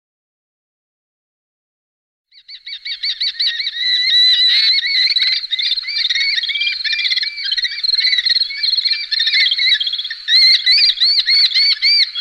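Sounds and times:
falcon sharp piercing calls: 2.4 - 12.1.

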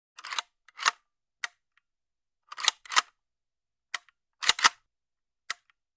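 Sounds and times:
rifle reloading: 2.5 - 3.1, 4.4 - 4.8.

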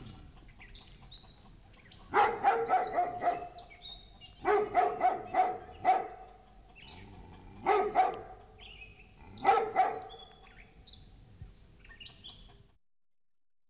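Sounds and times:
large dog barking: 2.1 - 10.4.

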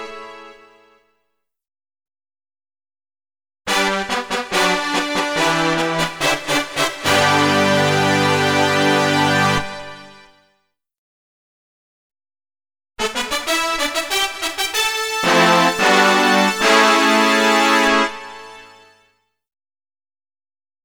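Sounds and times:
introductory fanfare: 3.7 - 10.3, 13.0 - 18.9.

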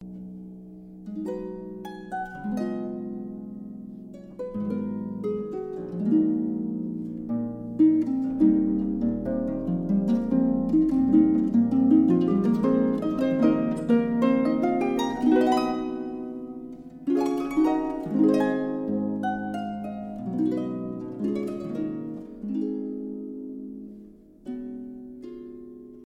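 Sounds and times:
harp playing: 0.0 - 26.0.

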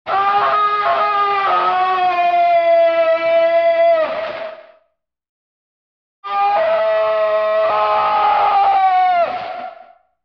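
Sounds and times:
man screaming with distortion effect: 0.1 - 4.0, 6.2 - 9.7.

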